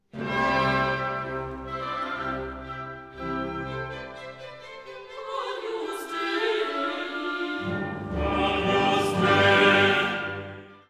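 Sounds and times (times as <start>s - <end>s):
choir and orchestra: 0.0s - 10.8s.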